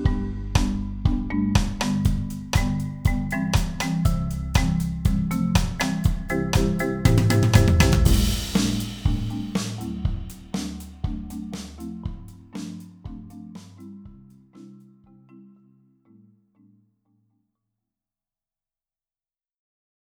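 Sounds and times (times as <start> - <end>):
percussion: 0.0 - 14.7.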